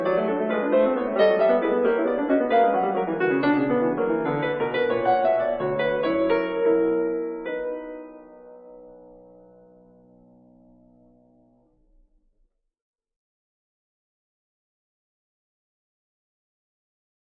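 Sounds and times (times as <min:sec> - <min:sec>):
piano fugue in B minor: 0:00.0 - 0:12.2.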